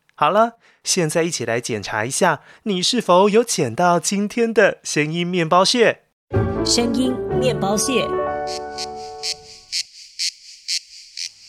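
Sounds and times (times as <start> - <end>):
speech: 0.2 - 9.8
cicada chirping: 8.5 - 11.4.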